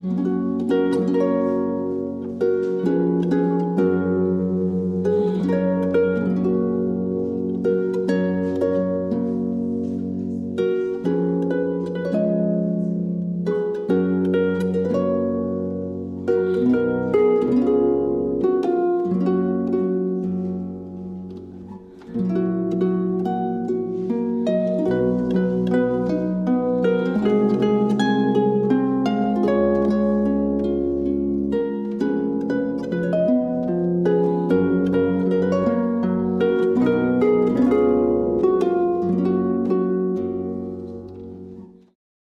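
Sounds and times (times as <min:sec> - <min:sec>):
harp: 0:00.0 - 0:42.0.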